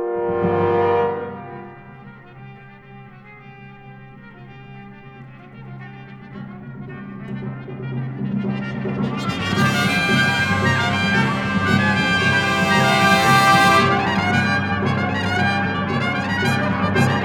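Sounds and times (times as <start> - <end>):
fanfare: 0.1 - 2.9, 8.6 - 17.2.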